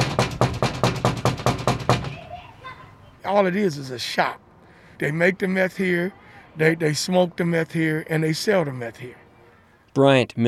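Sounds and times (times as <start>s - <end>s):
pounding on a meth house door: 0.0s - 2.3s
speech: 3.3s - 4.4s, 5.0s - 9.2s, 10.0s - 10.4s.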